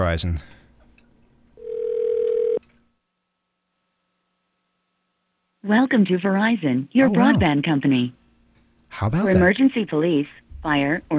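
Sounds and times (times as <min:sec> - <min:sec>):
speech: 0:00.0 - 0:00.6, 0:05.6 - 0:08.2, 0:08.9 - 0:11.1
telephone dial tone: 0:01.6 - 0:02.6.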